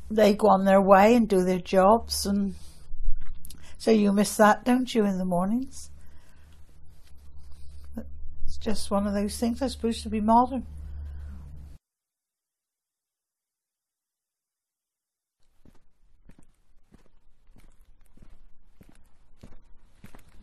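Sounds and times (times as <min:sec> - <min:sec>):
speech: 0:00.1 - 0:02.7, 0:03.8 - 0:05.9, 0:08.0 - 0:10.8
footsteps walking down a hill: 0:15.4 - 0:20.4.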